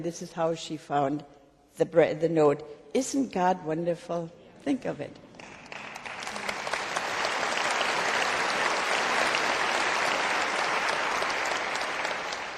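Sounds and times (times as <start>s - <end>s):
speech: 0.0s - 5.3s
audience applause: 5.4s - 12.5s.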